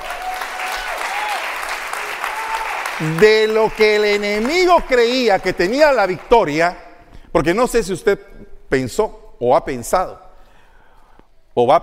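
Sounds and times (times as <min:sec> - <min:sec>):
loud audience applause: 0:00.0 - 0:06.3
speech: 0:03.0 - 0:06.8, 0:07.4 - 0:10.2, 0:11.6 - 0:11.8.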